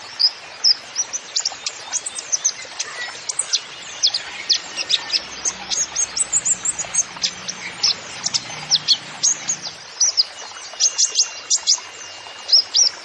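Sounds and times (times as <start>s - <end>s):
person singing: 0.2s - 12.8s.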